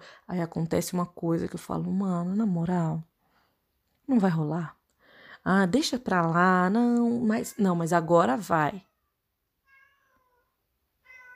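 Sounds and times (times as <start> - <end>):
speech: 0.3 - 3.1, 4.1 - 4.8, 5.4 - 8.9
cat meowing: 8.8 - 11.3.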